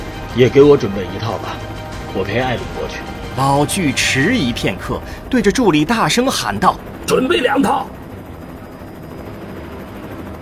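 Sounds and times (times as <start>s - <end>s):
helicopter taking off: 0.0s - 10.4s
speech: 0.4s - 8.0s.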